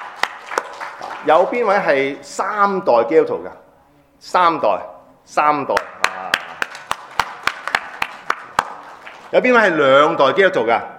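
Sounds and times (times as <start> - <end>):
audience at a Christian gathering clapping in a steady rhythm: 0.0 - 2.1, 5.8 - 9.8
speech: 1.2 - 3.6, 4.2 - 6.0, 9.3 - 10.9.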